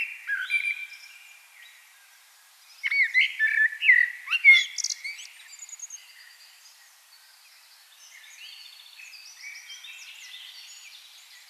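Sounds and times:
common blackbird singing: 0.0s - 1.8s, 2.7s - 11.4s.

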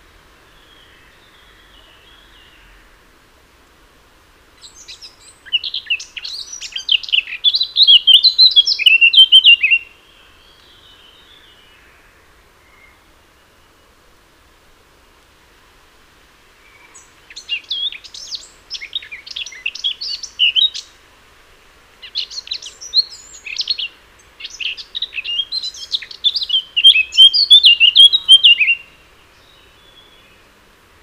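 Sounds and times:
low hiss: 0.0s - 31.0s
Eurasian blackcap song: 4.6s - 12.0s, 16.7s - 21.0s, 22.0s - 30.5s.

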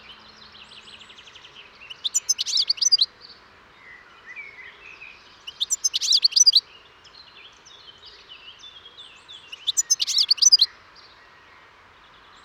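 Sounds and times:
European goldfinch twittering calls: 1.9s - 3.1s, 5.5s - 6.6s, 9.5s - 10.7s.

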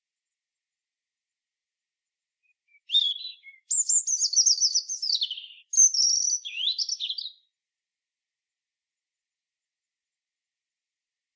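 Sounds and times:
European robin song: 2.4s - 7.5s.

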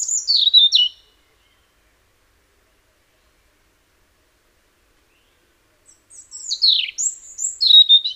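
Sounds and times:
Erithacus rubecula European robin singing tinkling trills and whistles: 0.0s - 4.4s, 5.0s - 8.1s.

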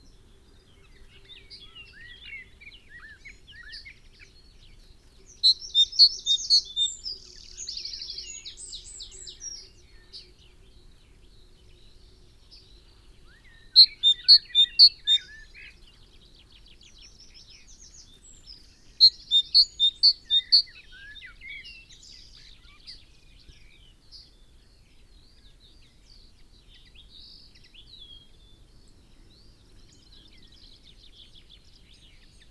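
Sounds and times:
other birds twittering: 5.3s - 7.6s, 17.8s - 20.7s
Great tit call series: 5.3s - 9.7s, 13.4s - 15.6s, 17.4s - 22.8s.

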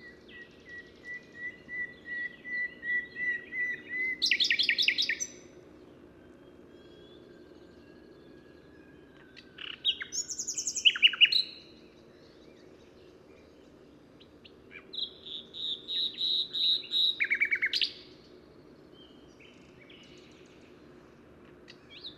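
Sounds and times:
common nightingale song: 0.0s - 5.5s, 6.3s - 20.8s, 21.6s - 22.1s.

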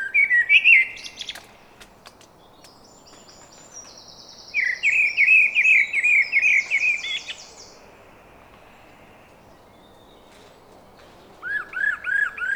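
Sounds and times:
common blackbird singing: 0.0s - 1.8s, 2.4s - 7.8s, 11.2s - 12.5s.

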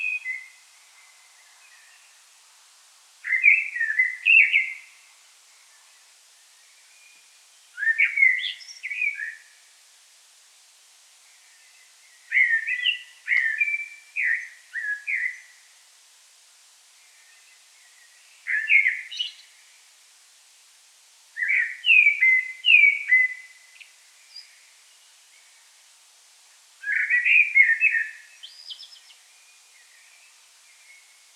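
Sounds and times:
common blackbird singing: 0.0s - 2.1s, 3.2s - 4.9s, 6.8s - 9.5s, 11.6s - 15.5s, 17.2s - 19.5s, 21.4s - 24.7s, 26.8s - 31.1s.

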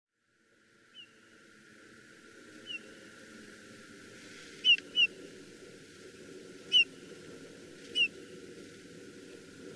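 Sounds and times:
Eurasian bullfinch Pyrrhula pyrrhula calling: 4.6s - 5.2s, 6.7s - 6.9s, 7.9s - 8.2s.

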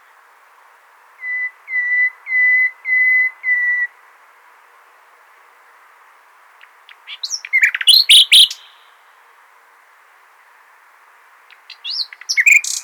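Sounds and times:
common nightingale singing: 0.9s - 4.0s, 6.6s - 9.0s, 11.4s - 12.8s.

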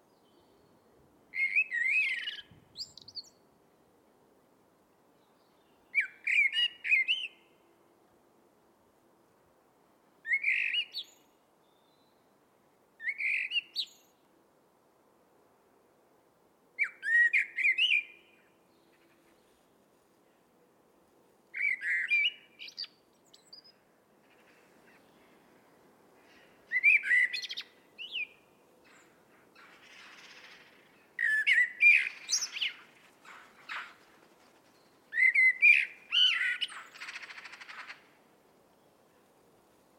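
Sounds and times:
Eurasian blackbird singing: 1.4s - 3.4s, 5.9s - 7.5s, 10.3s - 11.2s, 13.0s - 14.1s, 16.8s - 19.1s, 21.6s - 23.8s, 26.7s - 34.0s, 34.8s - 38.0s.

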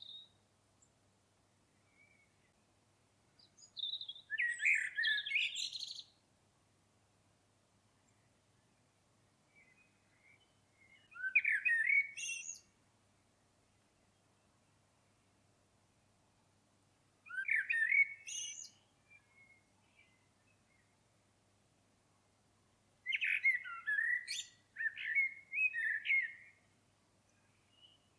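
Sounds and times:
common blackbird singing: 0.0s - 0.4s, 3.4s - 6.2s, 9.5s - 12.7s, 17.2s - 20.9s, 23.0s - 26.6s, 27.3s - 28.1s.

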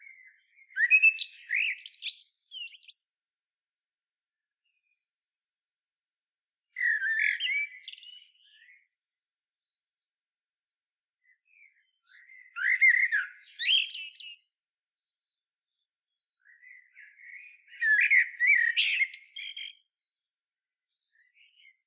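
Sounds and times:
common blackbird singing: 0.1s - 3.0s, 6.8s - 8.8s, 11.5s - 14.5s, 16.4s - 19.8s.

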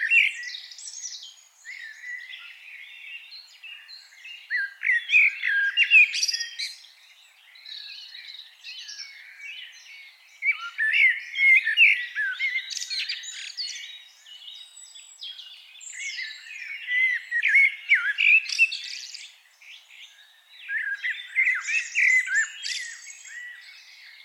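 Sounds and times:
Eurasian blackbird singing: 0.0s - 24.2s.

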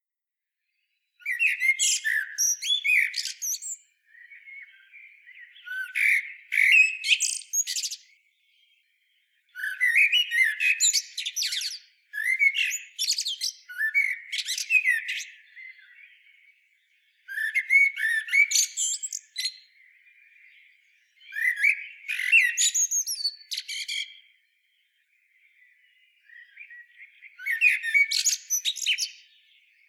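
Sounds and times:
common blackbird squeaky calls: 1.2s - 8.1s, 9.6s - 16.0s, 17.3s - 19.6s, 21.2s - 24.2s, 26.3s - 29.3s.

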